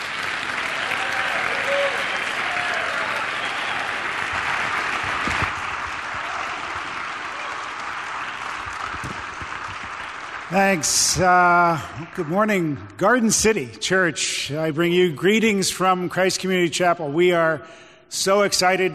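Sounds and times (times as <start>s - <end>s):
church congregation applauding a guest pastor at Garden City Church: 0.0s - 13.5s
speech: 10.6s - 18.9s.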